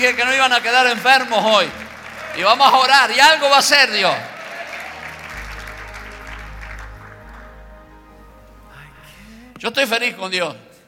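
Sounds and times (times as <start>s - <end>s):
speech: 0.0s - 1.8s, 2.4s - 4.3s, 9.6s - 10.6s
crowd applause: 0.0s - 8.7s
deep low hum: 5.3s - 9.8s.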